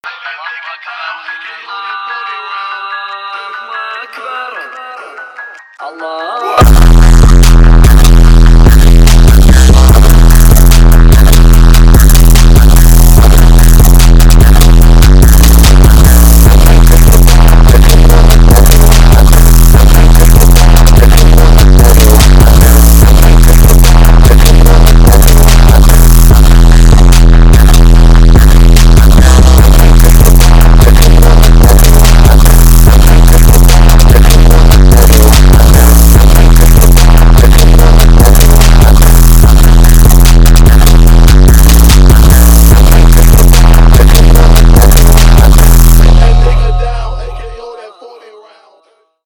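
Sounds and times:
bass: 0:06.6 - 0:47.6.

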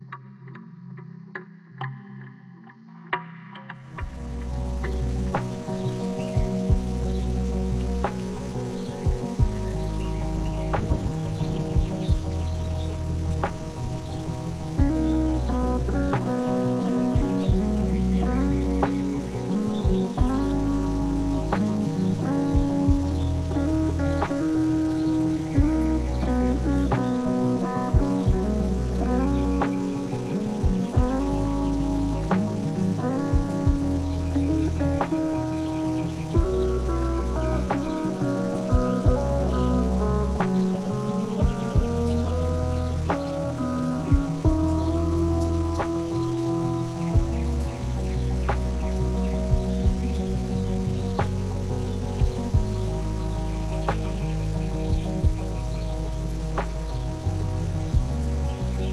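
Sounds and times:
lo-fi chill music: 0:00.0 - 0:58.9.

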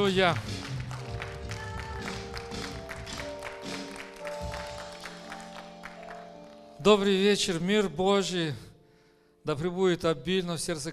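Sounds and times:
speech: 0:00.0 - 0:00.6, 0:06.8 - 0:08.6, 0:09.5 - 0:10.9
audience applause: 0:00.0 - 0:06.6.

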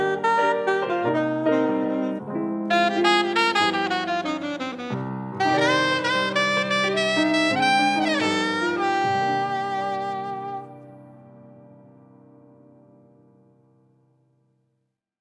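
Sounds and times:
jazz trio: 0:00.0 - 0:11.0.

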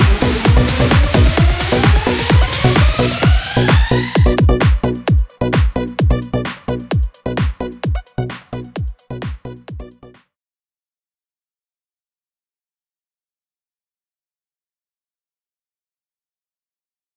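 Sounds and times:
DJ music: 0:00.0 - 0:10.2.

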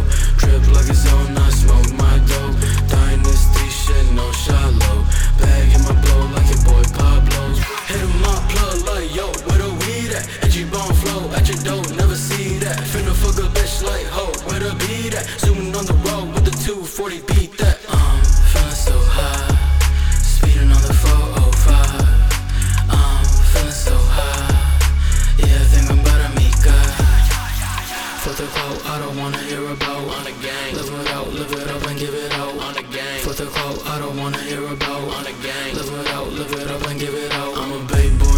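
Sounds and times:
bass: 0:00.0 - 0:16.8, 0:18.0 - 0:28.0, 0:37.9 - 0:38.3.

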